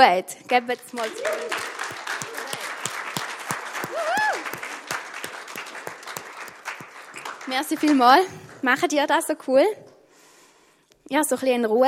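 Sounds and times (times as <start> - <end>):
speech: 0.0 - 2.2, 7.5 - 9.8, 11.1 - 11.8
audience applause for the band: 0.9 - 8.6.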